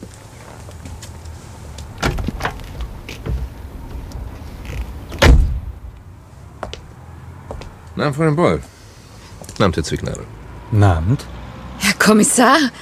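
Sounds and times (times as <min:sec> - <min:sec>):
car door shutting with a solid thump: 0:02.0 - 0:04.0, 0:05.1 - 0:05.8
car door latch clicks and rattles: 0:02.0 - 0:05.7
speech: 0:08.0 - 0:08.7, 0:09.6 - 0:11.4, 0:12.0 - 0:12.8.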